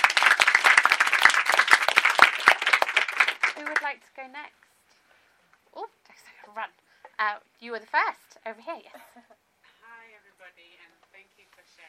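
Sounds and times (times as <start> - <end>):
crowd applauding: 0.0 - 3.9
speech: 3.9 - 4.7, 6.5 - 9.4.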